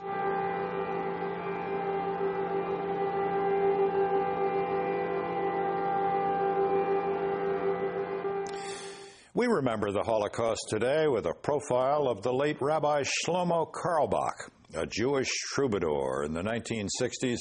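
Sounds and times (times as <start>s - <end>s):
memorial sirens sounding: 0.0s - 8.6s
speech: 9.4s - 17.3s.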